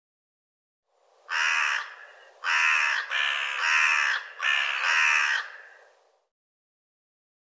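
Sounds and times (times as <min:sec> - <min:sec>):
bird cawing: 0:01.3 - 0:06.0.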